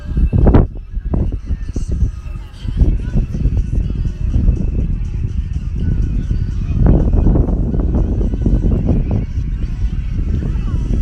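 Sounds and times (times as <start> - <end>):
faint voices: 0.0 - 5.7, 9.0 - 11.0
sea wind blowing across a beach: 0.0 - 11.0.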